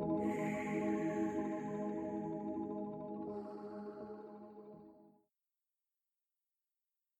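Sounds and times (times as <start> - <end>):
ocean temple ambient music: 0.2 - 4.4.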